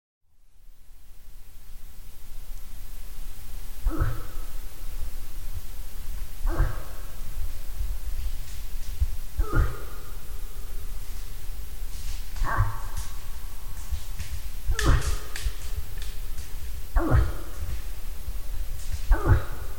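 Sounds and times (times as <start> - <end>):
moose grunts: 3.8 - 5.1, 6.1 - 8.0, 9.3 - 11.3, 12.0 - 14.0, 14.6 - 19.7.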